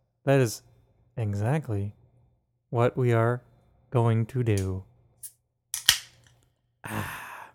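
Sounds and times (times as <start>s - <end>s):
speech: 0.2s - 2.0s, 2.7s - 4.9s
beer can cracked open: 5.8s - 6.3s.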